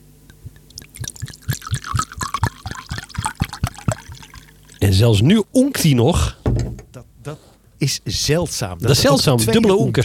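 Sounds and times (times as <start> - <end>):
drink pouring into a glass: 0.5 - 4.8
speech: 4.9 - 6.4, 7.3 - 10.0.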